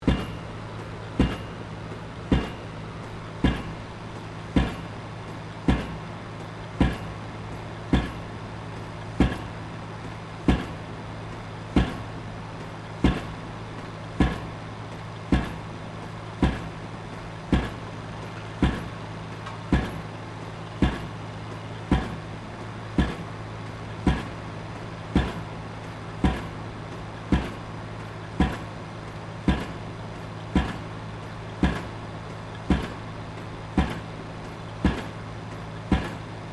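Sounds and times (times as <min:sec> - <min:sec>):
industrial pile driver operating: 0:00.0 - 0:36.5.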